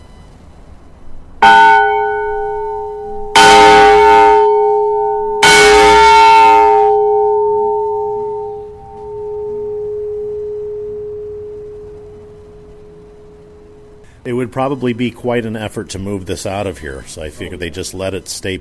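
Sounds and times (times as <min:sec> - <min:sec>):
large heavy emergency fire warning bell chiming: 0:01.4 - 0:14.0
speech: 0:14.6 - 0:18.5.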